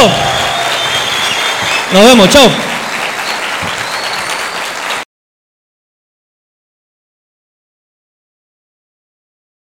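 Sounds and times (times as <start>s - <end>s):
speech: 0.0s - 0.2s, 1.9s - 2.7s
applause from a group: 0.0s - 5.1s.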